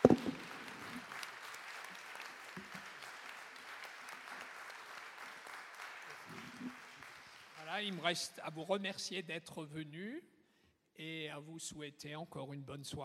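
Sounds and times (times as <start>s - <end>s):
audience applause: 0.0s - 8.3s
speech: 7.8s - 10.3s, 11.0s - 13.0s.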